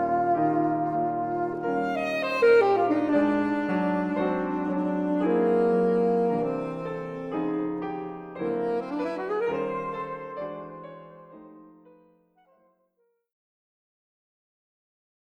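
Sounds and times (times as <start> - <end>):
saxophone playing a serenade: 0.0 - 11.6
piano playing a serenade: 0.0 - 12.8.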